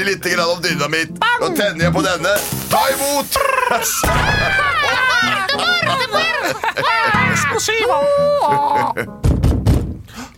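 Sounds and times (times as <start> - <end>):
speech: 0.0 - 9.4
laughter: 3.4 - 9.2
heavy dull knocking on a door: 9.2 - 10.0.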